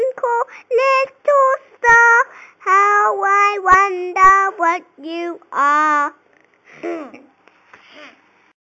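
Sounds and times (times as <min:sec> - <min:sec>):
person singing nursery rhyme: 0:00.0 - 0:06.2.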